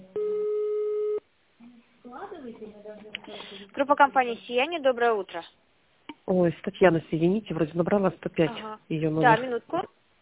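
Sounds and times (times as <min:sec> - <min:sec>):
telephone ringing tone: 0:00.1 - 0:01.2
speech: 0:02.5 - 0:05.6, 0:06.3 - 0:10.0.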